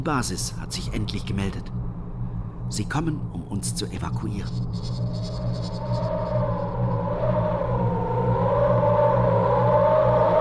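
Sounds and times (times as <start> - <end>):
speech: 0.0 - 1.8, 2.7 - 7.0
raging snowstorm wind: 0.0 - 10.3.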